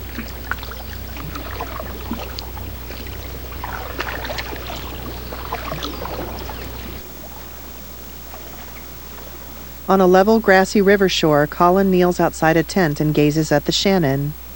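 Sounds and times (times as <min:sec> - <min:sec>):
canoe paddling along a river: 0:00.0 - 0:10.9
speech: 0:09.9 - 0:14.4.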